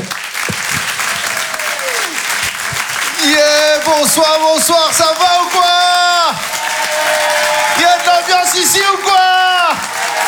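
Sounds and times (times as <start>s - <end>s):
audience clapping at a stand-up comedy show: 0.0s - 10.2s
person whooping: 1.2s - 2.4s, 5.7s - 10.2s
speech: 4.0s - 7.4s.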